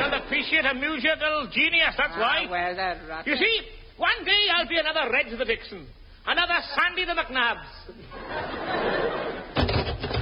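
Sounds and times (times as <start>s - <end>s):
laughter: 0.0s - 1.0s, 7.9s - 9.7s
speech: 0.4s - 9.2s
door: 9.6s - 10.1s.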